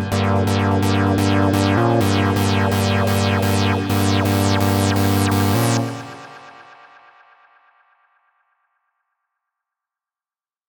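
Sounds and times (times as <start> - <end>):
three-oscillator saw synth stab: 0.2 - 6.8.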